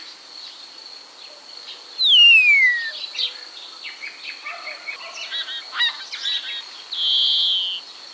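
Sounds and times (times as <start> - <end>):
common starling singing: 2.0 - 3.0, 6.9 - 7.8
high hiss: 2.1 - 3.1, 6.9 - 7.9.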